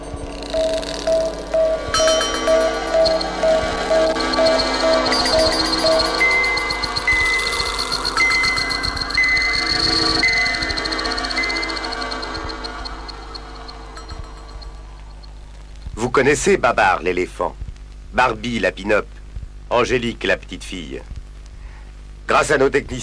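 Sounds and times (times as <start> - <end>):
toy space station echoing electronic messages: 0.0 - 15.3
speech: 16.2 - 17.6, 18.2 - 21.1, 22.3 - 23.0.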